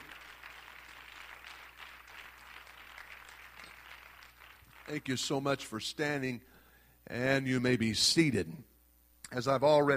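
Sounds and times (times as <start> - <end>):
audience clapping hands: 0.0 - 5.5
speech: 4.9 - 6.5, 7.1 - 8.7, 9.3 - 9.9.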